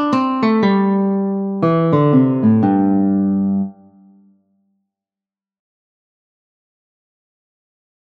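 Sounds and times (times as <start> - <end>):
guitar playing pentatonic box pattern: 0.0 - 4.3.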